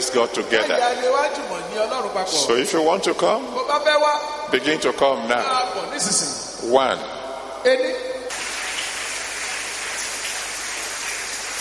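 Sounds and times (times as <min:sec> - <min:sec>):
speech: 0:00.0 - 0:08.1
crowd clapping: 0:08.3 - 0:11.5.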